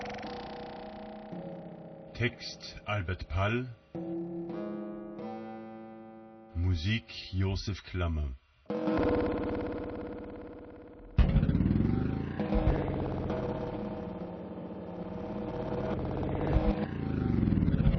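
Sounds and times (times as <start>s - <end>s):
speech: 2.2s - 3.8s, 6.8s - 9.8s
old loud car engine driving slowly: 11.1s - 17.9s.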